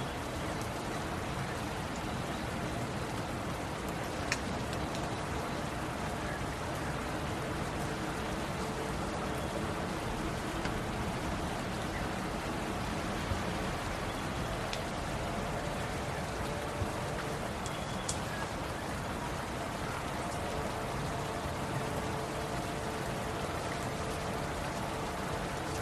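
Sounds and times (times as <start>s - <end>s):
steady rain: 0.0s - 25.8s.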